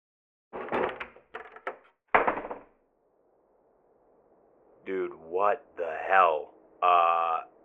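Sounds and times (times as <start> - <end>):
wooden trap door in the floor wrenched open: 0.6 - 1.8
speech: 4.9 - 7.0.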